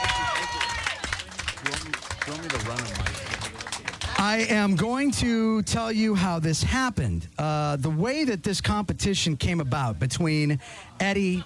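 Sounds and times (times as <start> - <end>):
voices cheering and calling out: 0.0 - 4.2
crowd applauding: 0.0 - 4.5
speech: 2.3 - 3.4, 4.2 - 11.4.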